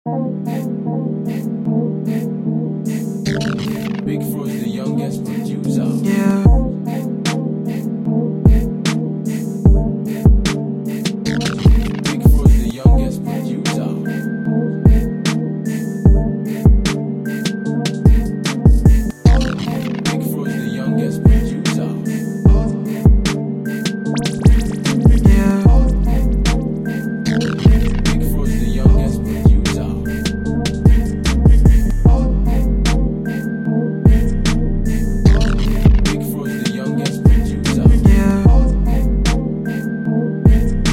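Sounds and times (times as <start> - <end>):
instrumental music: 0.1 - 40.9.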